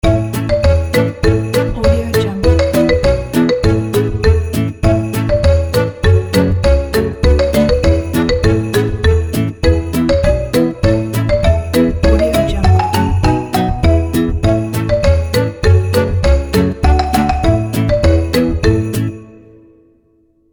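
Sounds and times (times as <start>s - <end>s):
marimba carol ident: 0.0s - 19.6s.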